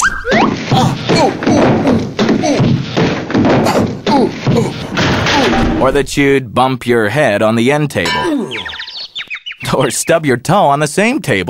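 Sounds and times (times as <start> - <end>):
person tripping on a roller skate and tumbling down stairs: 0.4 - 5.8
speech: 5.9 - 8.8, 9.6 - 11.4
person crying out: 8.2 - 8.7.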